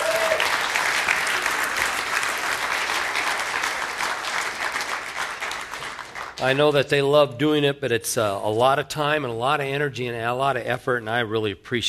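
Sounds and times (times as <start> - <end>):
audience applause for a choir: 0.0 - 6.6
speech: 6.4 - 11.8.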